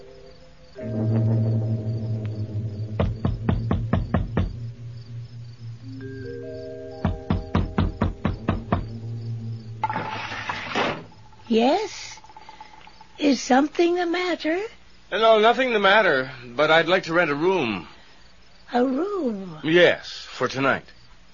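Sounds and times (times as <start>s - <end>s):
steady low humming drone: 0.0s - 13.2s
sharp knocking on a door: 3.0s - 4.8s, 7.0s - 9.0s
speech: 11.5s - 11.9s, 13.2s - 17.9s, 18.7s - 21.0s.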